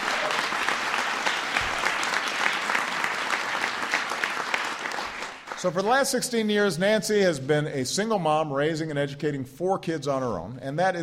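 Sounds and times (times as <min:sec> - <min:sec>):
crowd applause: 0:00.0 - 0:05.8
speech: 0:05.6 - 0:11.0.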